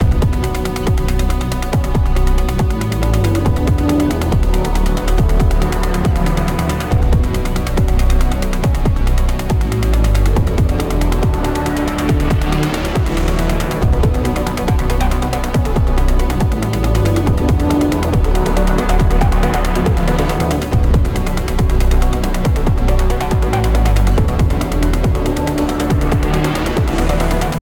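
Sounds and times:
boss battle music loop: 0.0 - 27.6.

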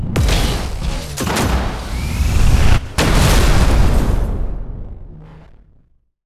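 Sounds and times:
buckshot shotgun blast: 0.1 - 4.8.

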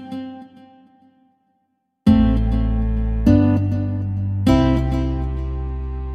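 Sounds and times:
delay pedal effect: 2.1 - 6.1.

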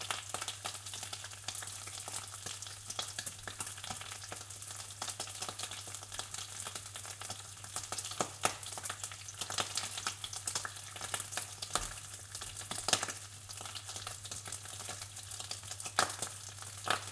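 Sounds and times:
bacon frying on an induction stove: 0.0 - 17.1
fat boiling on an induction stove: 0.0 - 17.1.

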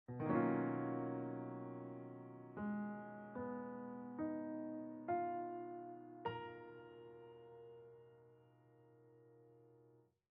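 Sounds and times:
piano ending: 0.1 - 8.2.

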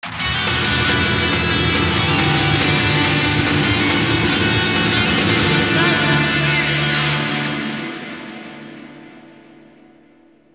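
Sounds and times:
strings in G sharp: 0.1 - 10.2.

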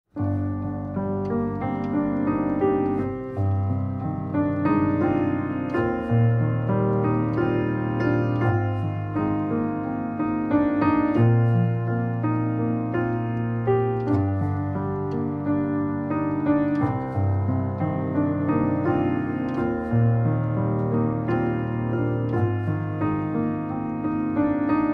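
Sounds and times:
piano: 0.1 - 24.9.

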